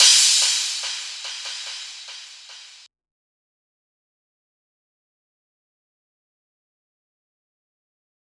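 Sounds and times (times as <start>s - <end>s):
psytrance cymbal: 0.0s - 2.9s.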